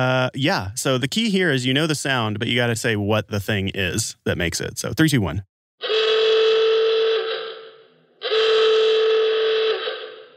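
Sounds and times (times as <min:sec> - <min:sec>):
speech: 0:00.0 - 0:06.0
klaxon car horn awooga: 0:05.8 - 0:10.3.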